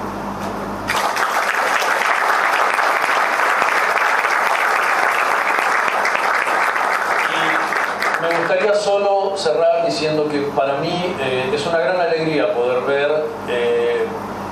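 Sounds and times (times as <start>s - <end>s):
audience applause: 0.9s - 9.0s
speech: 8.8s - 14.2s.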